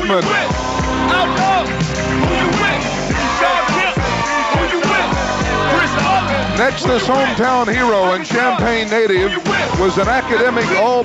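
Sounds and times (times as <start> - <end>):
speech: 0.1 - 3.8, 6.6 - 11.0
crowd cheering: 0.1 - 8.6
crowd applause: 0.7 - 6.6.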